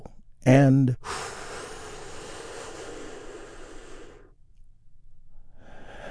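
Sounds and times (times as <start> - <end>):
speech: 0.4 - 1.2
big deep breath during a guided healing meditation: 1.0 - 4.4, 5.3 - 6.0.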